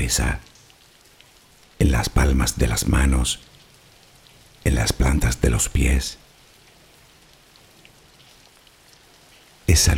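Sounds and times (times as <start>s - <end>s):
speech: 0.0s - 0.5s, 1.8s - 3.6s, 4.6s - 6.2s, 9.7s - 9.9s
steady rain falling: 0.0s - 9.9s.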